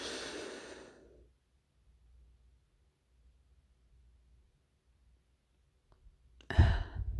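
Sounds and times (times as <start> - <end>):
sharper louder breath: 0.0 - 1.1
slow exhale during a relaxation exercise: 0.0 - 1.2.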